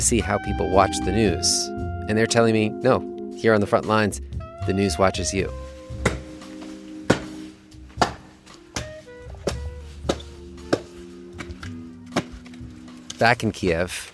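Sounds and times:
speech: 0.0 - 5.7, 13.2 - 14.1
chopping wood with a small axe: 6.0 - 6.4, 7.1 - 7.4, 8.0 - 12.6.

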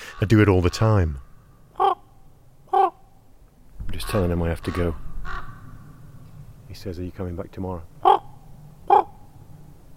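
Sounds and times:
raven croaking: 0.0 - 3.0, 3.8 - 6.8, 7.8 - 9.8
speech: 0.2 - 1.3, 4.0 - 5.5, 6.7 - 8.2.

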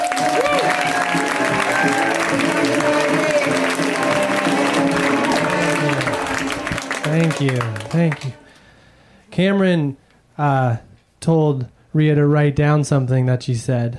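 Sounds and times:
voices cheering: 0.0 - 8.6
audience applause: 0.0 - 8.7
speech: 7.2 - 8.4, 9.4 - 13.9.

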